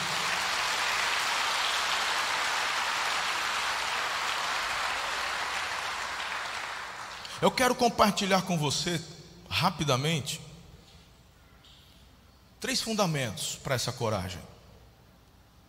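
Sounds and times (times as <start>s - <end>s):
audience applause: 0.0s - 7.3s
speech: 7.4s - 10.5s, 12.6s - 14.5s.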